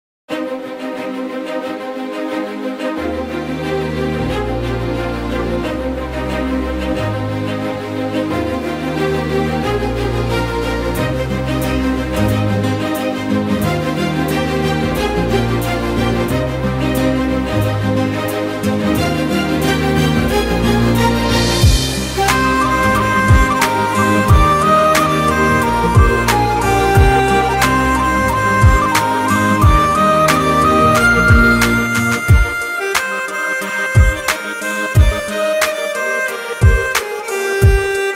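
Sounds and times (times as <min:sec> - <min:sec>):
background music: 0:00.3 - 0:38.1.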